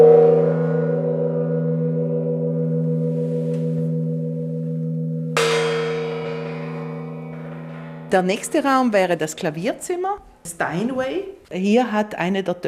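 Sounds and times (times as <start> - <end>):
struck Asian gong: 0.0 - 10.0
speech: 8.1 - 12.6.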